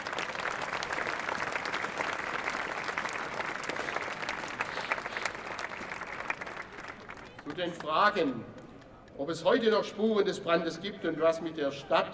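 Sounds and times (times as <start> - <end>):
audience applause: 0.0 - 7.6
speech: 7.6 - 8.6, 9.2 - 12.1.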